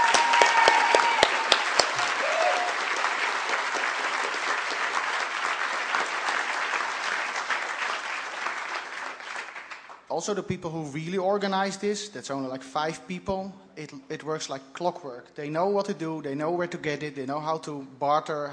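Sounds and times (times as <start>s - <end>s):
audience applause: 0.0s - 10.1s
speech: 10.2s - 18.5s.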